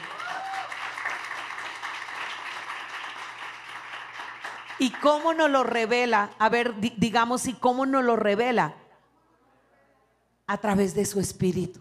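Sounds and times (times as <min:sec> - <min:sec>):
audience applause: 0:00.0 - 0:05.0
speech: 0:04.8 - 0:08.8, 0:10.5 - 0:11.7.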